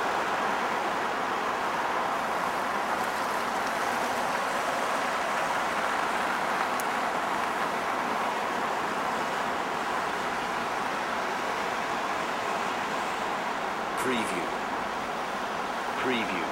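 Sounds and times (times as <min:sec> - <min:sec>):
city traffic heard from 3rd floor: 0:00.0 - 0:16.5.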